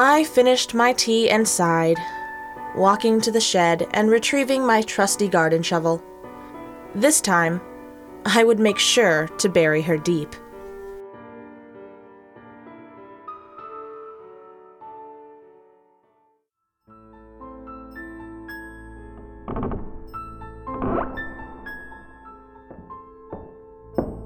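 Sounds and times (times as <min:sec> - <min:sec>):
speech: 0:00.0 - 0:02.2, 0:02.8 - 0:06.1, 0:06.9 - 0:10.4
footsteps downstairs: 0:20.8 - 0:24.2.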